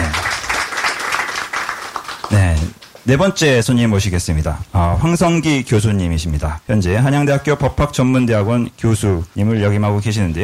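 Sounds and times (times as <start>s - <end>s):
audience applause: 0.0s - 3.0s
speech: 2.3s - 10.4s.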